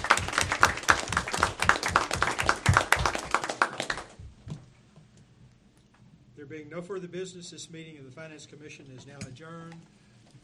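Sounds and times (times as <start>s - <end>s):
round of applause: 0.0s - 4.2s
speech: 6.6s - 10.4s.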